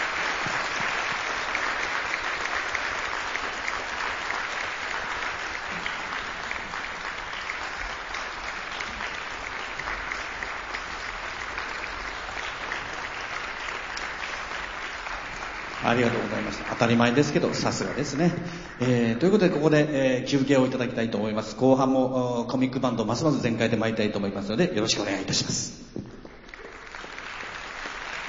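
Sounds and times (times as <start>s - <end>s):
audience applause: 0.0s - 19.8s, 26.3s - 28.2s
speech: 15.9s - 25.7s.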